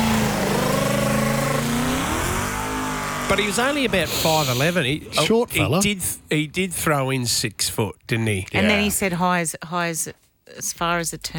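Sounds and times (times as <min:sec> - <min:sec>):
Mustang car engine revving: 0:00.0 - 0:05.4
speech: 0:03.3 - 0:11.3.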